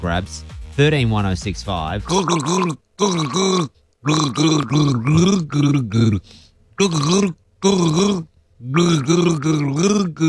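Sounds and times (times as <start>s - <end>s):
speech: 0.0s - 10.2s
person gargling a song: 2.0s - 6.2s, 6.8s - 10.2s.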